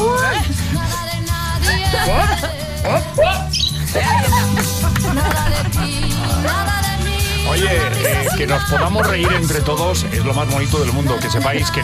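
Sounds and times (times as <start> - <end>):
laughter: 0.2 - 10.3
people imitating a little bird chirping: 1.6 - 7.2
speech: 8.4 - 11.8.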